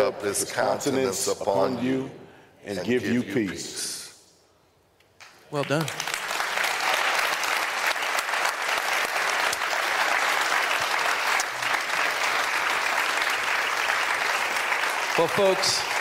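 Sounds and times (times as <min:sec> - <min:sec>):
speech: 0:00.0 - 0:04.0, 0:05.5 - 0:06.2, 0:15.2 - 0:15.9
audience standing and applauding: 0:05.5 - 0:15.9.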